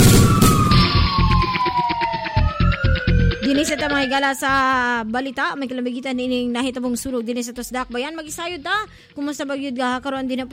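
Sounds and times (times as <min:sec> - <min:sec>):
Magnum Fire Alarm siren sound effect: 0:00.0 - 0:07.2
speech: 0:03.6 - 0:10.5.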